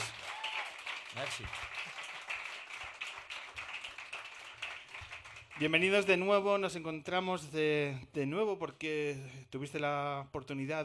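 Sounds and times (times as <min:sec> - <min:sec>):
audience applause: 0:00.0 - 0:06.2
speech: 0:01.2 - 0:01.8, 0:05.6 - 0:10.8.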